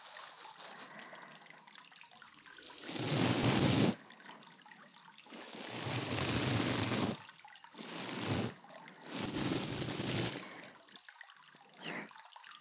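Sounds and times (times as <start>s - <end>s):
ear cleaning after a bath recorded with a binaural microphone: 2.7s - 4.0s, 5.3s - 7.2s, 7.8s - 10.6s.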